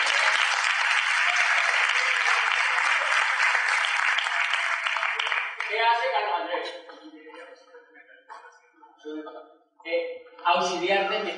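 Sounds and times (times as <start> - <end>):
audience applause: 0.0 - 5.9
speech: 5.7 - 7.0, 9.8 - 11.3.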